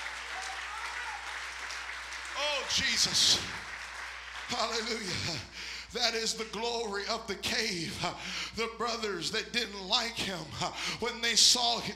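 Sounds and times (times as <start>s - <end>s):
crowd applauding: 0.0s - 6.6s
speech: 2.7s - 3.6s, 4.5s - 11.9s.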